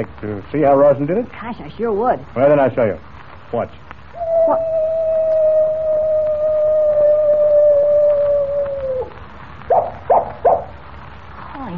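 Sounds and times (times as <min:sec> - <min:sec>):
speech: 0:00.0 - 0:03.9, 0:04.5 - 0:05.0
coyote howling: 0:04.1 - 0:10.8.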